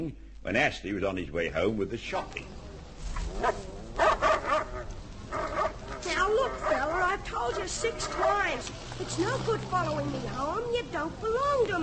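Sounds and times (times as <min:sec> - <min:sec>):
speech: 0:00.0 - 0:02.6, 0:03.4 - 0:03.8, 0:06.3 - 0:11.8
dog barking: 0:03.4 - 0:08.5.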